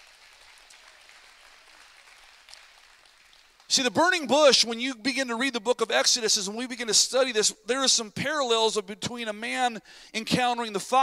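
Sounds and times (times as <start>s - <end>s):
applause: 0.0s - 4.0s
speech: 3.7s - 11.0s.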